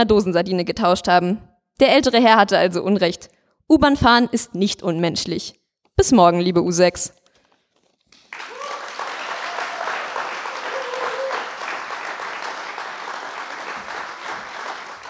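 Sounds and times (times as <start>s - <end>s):
speech: 0.0s - 7.2s
audience applause: 8.1s - 15.0s.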